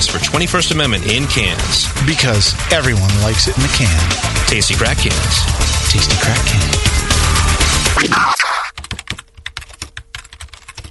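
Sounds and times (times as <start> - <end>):
speech: 0.4 - 7.0, 8.0 - 8.5
loud noisy passage: 0.8 - 8.7
computer keyboard typing a review of a yeast strain: 8.4 - 10.8.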